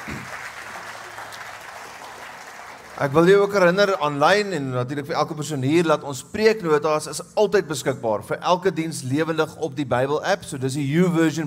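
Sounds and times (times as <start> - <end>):
audience clapping in welcome: 0.0 - 3.5
speech: 3.0 - 11.4.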